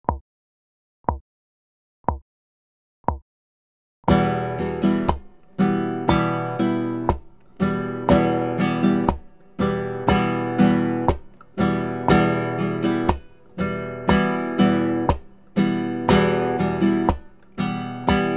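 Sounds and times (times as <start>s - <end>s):
instrument strumming: 4.1s - 18.3s.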